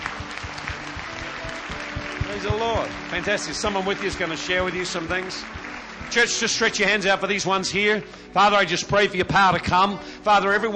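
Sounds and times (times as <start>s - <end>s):
audience applause: 0.0s - 7.7s
speech: 2.4s - 10.7s.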